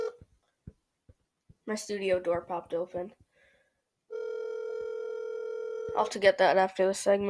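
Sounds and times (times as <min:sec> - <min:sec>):
speech: 0:01.7 - 0:03.2, 0:06.0 - 0:07.2
electronic ringback tone of an outgoing phone call: 0:04.1 - 0:06.0.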